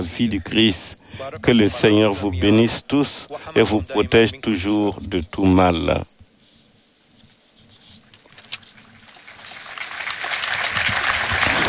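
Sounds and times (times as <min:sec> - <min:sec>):
speech: 0:00.2 - 0:06.1
faithful applauding in St. Peter's Square: 0:09.1 - 0:11.6.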